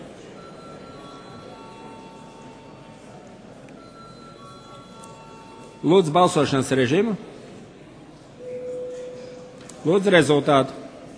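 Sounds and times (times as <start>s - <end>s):
parliament chamber electric bell ringing: 0.4s - 2.8s, 3.8s - 6.4s
speech: 5.8s - 7.3s, 9.8s - 10.8s.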